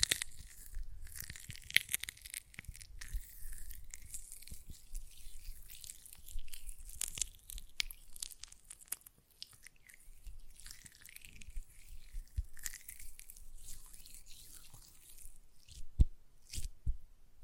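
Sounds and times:
hands working a gel lotion: 0:00.0 - 0:16.8
faint low thumps: 0:16.8 - 0:17.1.

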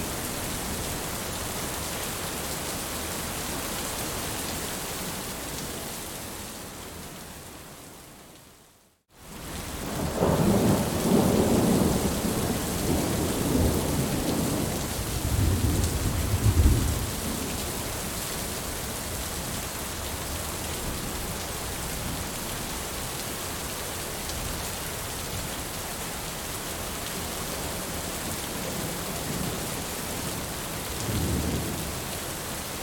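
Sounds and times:
steady, dense rain: 0:00.0 - 0:32.8
low, rolling thunder: 0:10.0 - 0:17.5.

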